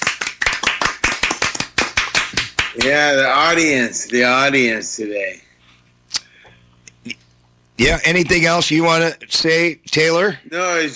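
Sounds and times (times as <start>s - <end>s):
audience applause for a female guest: 0.0s - 3.0s
speech: 2.8s - 5.5s, 7.8s - 10.9s.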